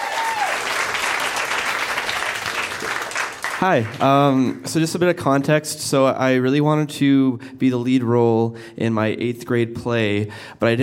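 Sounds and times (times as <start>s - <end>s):
audience applause welcoming a reader at a live reading event: 0.0s - 4.1s
speech: 3.6s - 10.8s.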